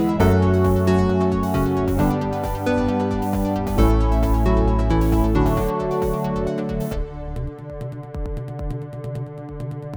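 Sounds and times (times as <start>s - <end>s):
dance music: 0.0s - 7.8s.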